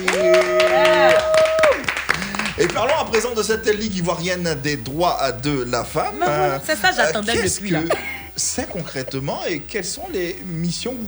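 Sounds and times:
scattered clapping from a small group: 0.0s - 6.0s
laughter: 0.0s - 11.0s
steady held tone: 0.0s - 11.0s
speech: 2.6s - 11.0s.

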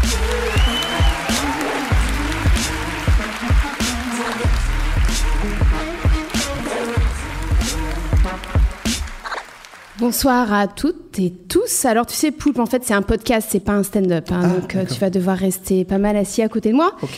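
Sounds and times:
crowd clapping: 0.0s - 10.4s
whistle: 0.4s - 1.4s
speech: 10.0s - 17.1s.

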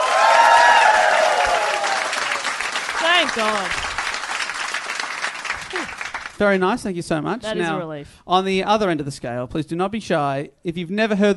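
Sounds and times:
live audience applause: 0.0s - 6.4s
speech: 3.2s - 3.8s, 6.4s - 11.3s.

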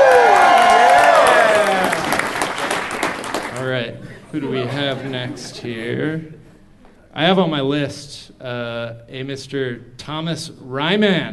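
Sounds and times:
people cheering and whooping: 0.0s - 2.5s
audience applause: 0.0s - 3.7s
laughter: 4.0s - 6.3s
speech: 4.9s - 6.4s, 7.1s - 11.3s.

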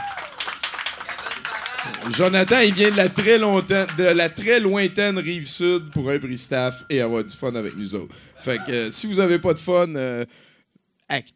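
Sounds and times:
audience applause: 0.0s - 4.4s
speech: 1.8s - 10.5s, 11.1s - 11.3s.

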